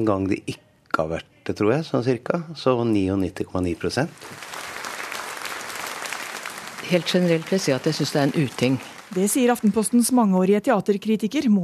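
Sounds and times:
speech: 0.0s - 4.6s, 6.9s - 11.6s
theatre audience standing ovation applause: 3.8s - 10.4s.

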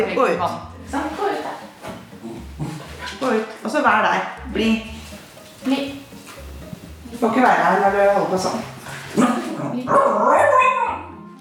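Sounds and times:
speech: 0.0s - 1.7s, 3.2s - 5.0s, 5.6s - 6.0s, 7.2s - 10.7s
dog barking: 9.2s - 11.1s.

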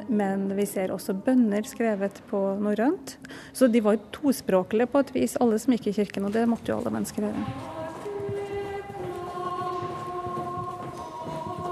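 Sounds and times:
speech: 0.1s - 7.8s
12th-century hymn as background music: 6.7s - 11.7s.

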